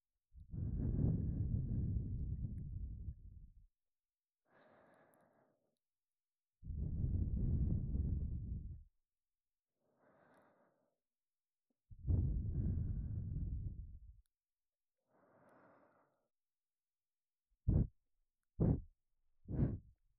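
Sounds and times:
breathing loop on the left side for sleep: 0.5 - 3.2, 4.4 - 5.8, 6.7 - 8.8, 9.8 - 11.1, 12.0 - 14.1, 15.0 - 16.4, 19.5 - 19.8.

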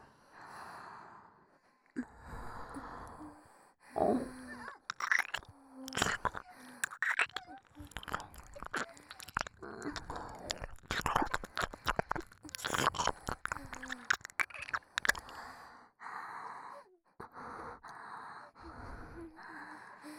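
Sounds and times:
soft breaths: 0.2 - 20.1
wet licking and mouth sounds inside the ear in an ASMR recording: 4.8 - 15.5.

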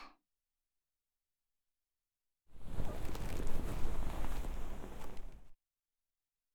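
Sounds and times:
blowing into ear ASMR: 2.6 - 5.5.

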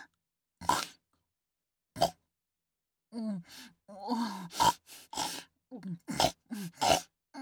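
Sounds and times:
woman snorting through her nose like a pig: 0.7 - 1.0, 4.5 - 5.5, 6.1 - 7.1.

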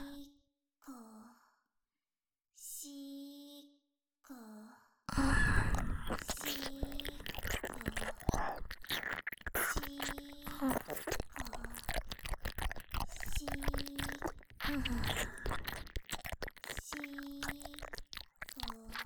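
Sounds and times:
ASMR ear licking sounds: 5.1 - 19.0.

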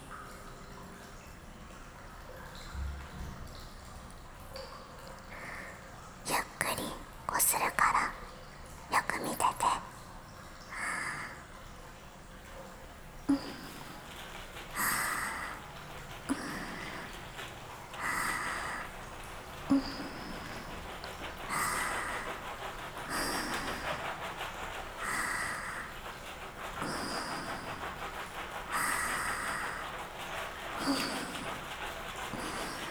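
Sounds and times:
soap shampoo lathering with natural carbonated spring water: 5.0 - 32.8
massage with natural carbonated water: 12.4 - 32.8.

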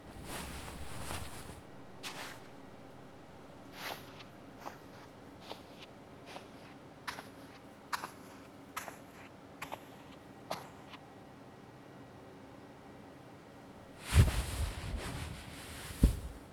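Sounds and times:
ASMR face and neck massage: 0.1 - 7.3, 14.0 - 16.5.

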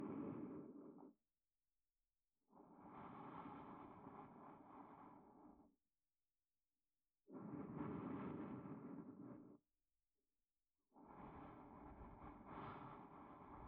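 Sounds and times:
sleep aid loop in left channel: 0.0 - 1.2, 2.4 - 5.8, 7.2 - 9.6, 10.8 - 13.6.

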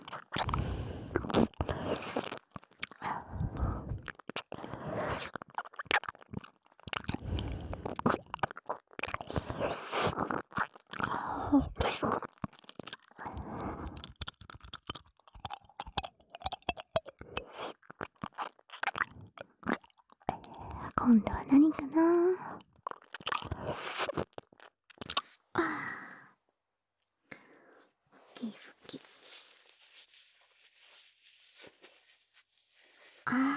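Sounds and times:
crunchy chewing and biting in a binaural recording: 0.0 - 21.0, 22.5 - 25.3
wet tongue and mouth sounds: 0.0 - 25.4
speech: 21.1 - 22.1.

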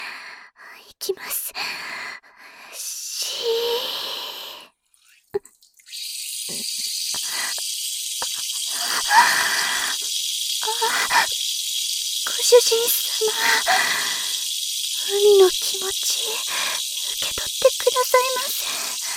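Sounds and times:
speech: 1.0 - 1.9, 12.6 - 14.1, 15.1 - 19.0
urine stream hissing: 5.9 - 19.1.

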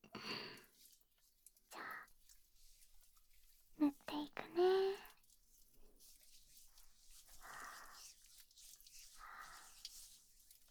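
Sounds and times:
earlobe massage: 2.1 - 10.6.

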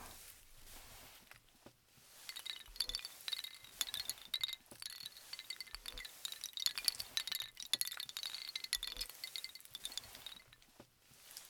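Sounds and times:
wind chime tinkling: 2.3 - 10.7.

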